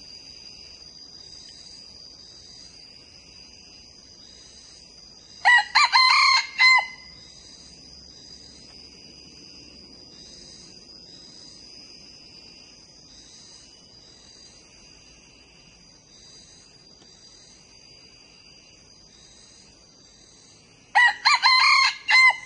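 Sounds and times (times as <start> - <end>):
young male red junglefowl crowing: 5.4 - 7.2, 20.9 - 22.4.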